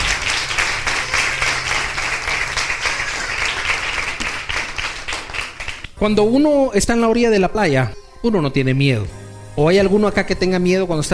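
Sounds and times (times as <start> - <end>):
audience clapping hands: 0.0 - 6.0
speech: 6.0 - 11.1.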